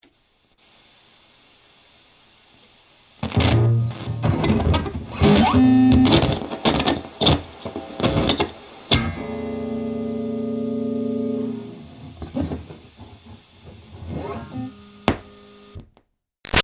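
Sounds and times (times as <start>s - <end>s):
electric guitar through amp: 3.2s - 15.8s.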